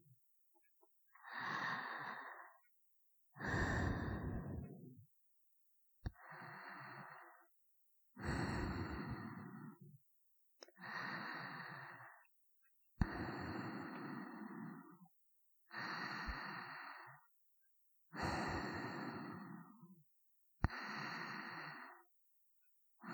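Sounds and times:
sleeping breathing: 1.2s - 2.7s, 3.4s - 5.0s, 6.1s - 7.5s, 8.2s - 9.9s, 10.8s - 12.3s, 13.0s - 15.0s, 15.7s - 17.3s, 18.2s - 19.9s, 20.7s - 22.1s.

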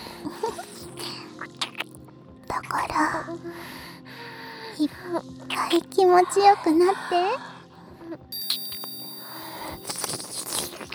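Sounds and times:
speech: 2.6s - 3.8s, 4.8s - 7.5s
hypnosis bell ringing: 8.3s - 9.7s.

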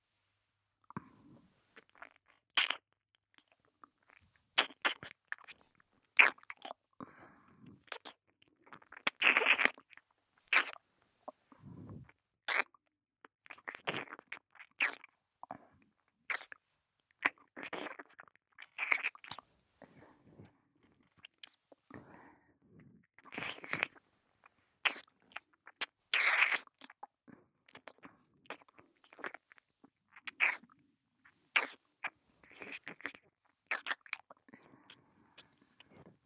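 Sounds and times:
wet ASMR ear-licking mouth clicks and slurps on the left ear: 1.8s - 5.6s, 6.2s - 6.8s, 7.8s - 10.8s, 12.5s - 12.8s, 13.4s - 15.1s, 16.3s - 16.6s, 17.2s - 19.5s, 23.2s - 24.0s, 24.8s - 27.1s, 27.7s - 30.7s, 31.5s - 35.8s.

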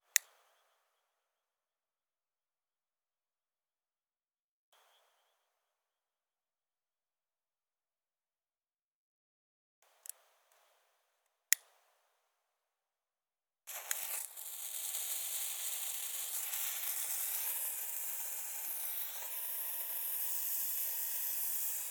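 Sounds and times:
handheld firework spraying: 13.7s - 21.8s.

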